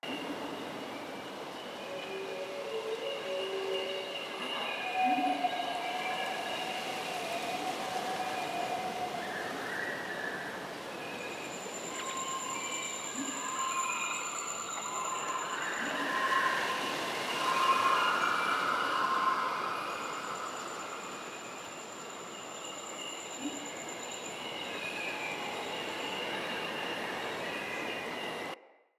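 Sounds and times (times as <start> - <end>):
daytime ambience loop in glades: 0.0 - 28.6.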